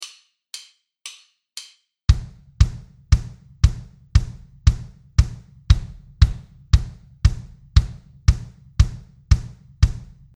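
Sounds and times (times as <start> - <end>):
kick drum: 2.1 - 10.3.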